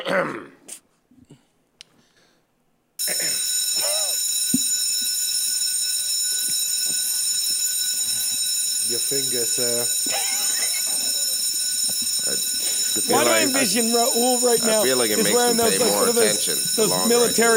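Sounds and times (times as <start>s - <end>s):
speech: 0.1s - 0.8s, 9.1s - 10.6s, 12.0s - 17.5s
loud bell ringing: 3.0s - 17.5s
laughter: 10.0s - 11.6s, 12.2s - 17.5s
murmur of voices: 12.7s - 17.5s.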